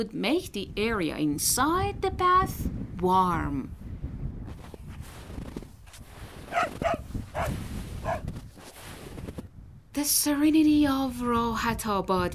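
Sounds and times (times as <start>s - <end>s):
speech: 0.0s - 3.8s, 10.0s - 12.3s
wind rumble: 1.7s - 12.3s
dogs playing far away yipping and barking: 6.5s - 8.4s.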